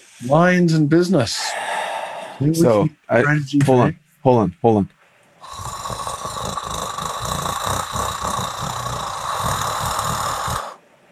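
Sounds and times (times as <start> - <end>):
speech: 0.2 - 1.7, 2.4 - 5.7
person imitating a cat purring: 5.4 - 10.8.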